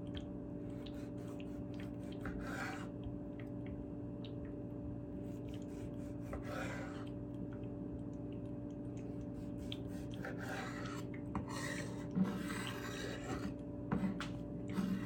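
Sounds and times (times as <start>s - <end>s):
steady low hum with a faint tone: 0.0s - 15.0s
knife scraping a cutting board slicing tomatoes: 10.2s - 15.0s.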